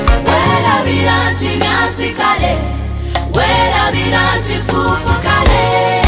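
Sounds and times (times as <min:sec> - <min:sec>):
choir singing: 0:00.2 - 0:06.0.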